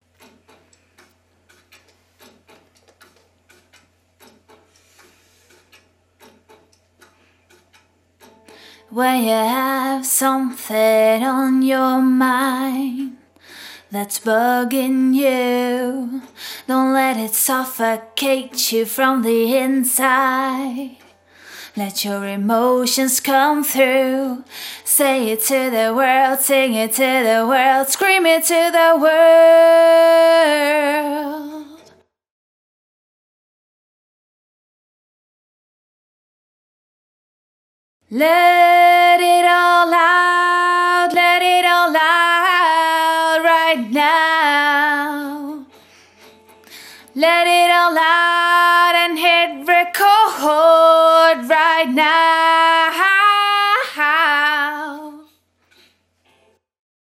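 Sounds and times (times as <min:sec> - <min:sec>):
a cappella singing: 0:08.9 - 0:13.2, 0:13.9 - 0:21.0, 0:21.8 - 0:31.9, 0:38.1 - 0:45.7, 0:47.2 - 0:55.3.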